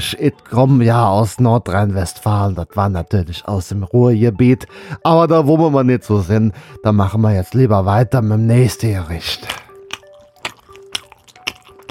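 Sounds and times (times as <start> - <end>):
speech: 0.0 - 9.6
person smacking while eating kale: 9.4 - 11.9.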